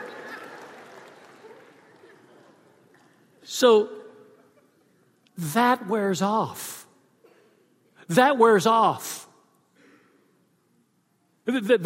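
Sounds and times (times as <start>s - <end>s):
audience clapping: 0.0s - 3.1s
speech: 3.5s - 4.0s, 5.4s - 6.8s, 8.1s - 9.2s, 11.5s - 11.8s.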